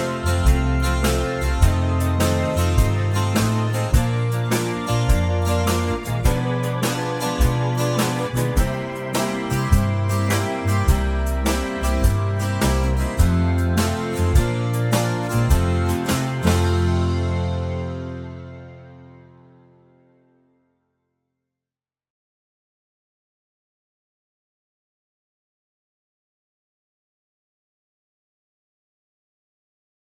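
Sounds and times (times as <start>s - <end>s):
short musical accompaniment: 0.0s - 19.7s.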